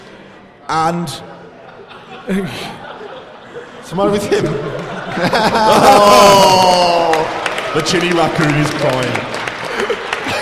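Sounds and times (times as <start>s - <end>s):
speech: 0.7s - 1.3s, 2.3s - 2.8s, 3.9s - 9.4s
laughter: 1.4s - 7.4s, 9.4s - 10.4s
audience applause: 5.7s - 10.4s.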